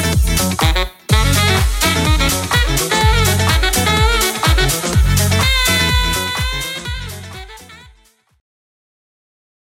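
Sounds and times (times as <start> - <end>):
saxophone playing wedding music mix: 0.6 - 8.3.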